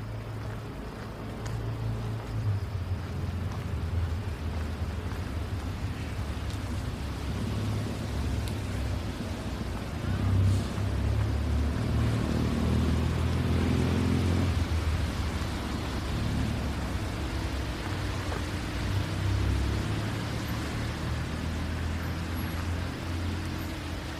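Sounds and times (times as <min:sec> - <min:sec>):
downtown traffic noise on a rainy night: 0:00.0 - 0:24.1
hiss of wet pavement: 0:00.0 - 0:24.1
vehicle engine rumble passing: 0:00.0 - 0:24.1.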